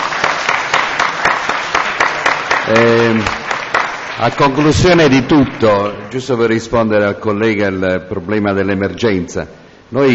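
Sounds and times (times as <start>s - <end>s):
audience applause: 0.0s - 6.7s
speech: 2.7s - 3.4s, 4.2s - 10.1s.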